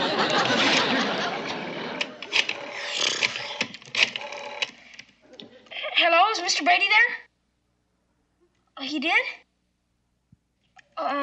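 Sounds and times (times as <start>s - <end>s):
laughter: 0.0s - 2.5s, 5.2s - 6.0s
rotary phone dial whirring and ratcheting: 0.1s - 5.2s
speech: 6.6s - 7.2s, 8.9s - 9.4s, 11.0s - 11.2s.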